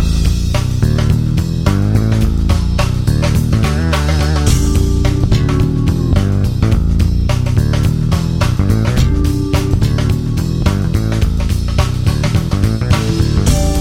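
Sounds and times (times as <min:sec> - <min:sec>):
bass multisample notes: 0:00.0 - 0:13.7.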